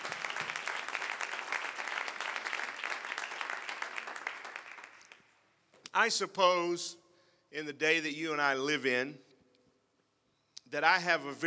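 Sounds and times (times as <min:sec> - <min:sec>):
audience clapping: 0:00.0 - 0:05.4
speech: 0:06.0 - 0:09.3, 0:10.7 - 0:11.4.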